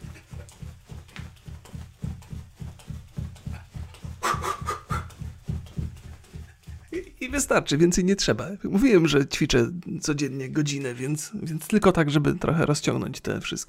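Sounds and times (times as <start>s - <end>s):
footsteps running in place: 0.0s - 9.1s
speech: 7.2s - 13.6s.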